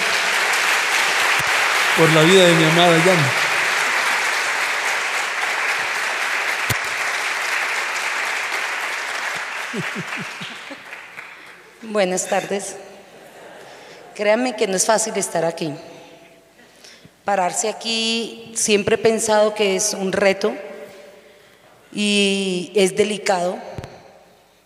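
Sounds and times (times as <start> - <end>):
audience applause: 0.0 - 11.8
speech: 2.0 - 3.4, 9.8 - 10.5, 11.8 - 12.8, 14.2 - 15.9, 17.3 - 20.7, 22.0 - 23.7
man calling out: 2.0 - 3.5
laughter: 9.6 - 11.5, 12.3 - 14.2.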